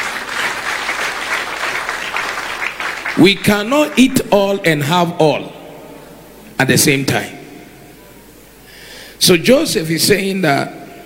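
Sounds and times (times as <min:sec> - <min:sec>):
audience clapping hands: 0:00.0 - 0:04.3
speech: 0:03.2 - 0:05.5, 0:06.6 - 0:07.4, 0:09.2 - 0:10.8.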